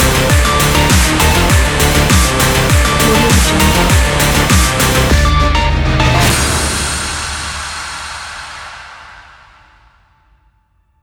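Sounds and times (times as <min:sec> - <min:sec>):
powerful sport electro music: 0:00.0 - 0:08.1.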